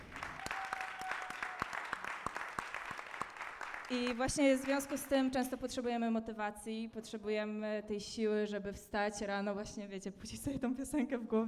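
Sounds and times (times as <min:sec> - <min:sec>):
loud applause: 0:00.0 - 0:05.2
speech: 0:03.9 - 0:11.4.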